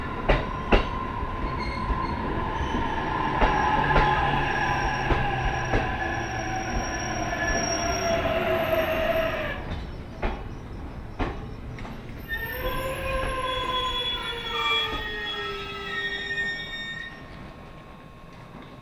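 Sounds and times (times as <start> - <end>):
train on the Tohoku Main Line rumbling: 0.0 - 18.8
high metallic squeals: 1.5 - 9.7, 12.2 - 18.8.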